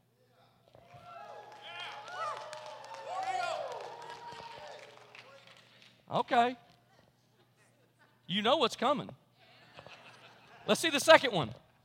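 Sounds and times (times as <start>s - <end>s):
audience cheering: 0.8s - 5.4s
speech: 6.1s - 6.7s, 8.3s - 9.2s, 10.6s - 11.6s.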